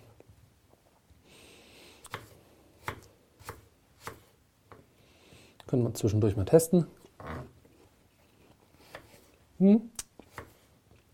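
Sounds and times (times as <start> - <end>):
knife dicing apple pieces into cubes: 2.1 - 4.8
speech: 5.7 - 7.0, 9.6 - 9.9.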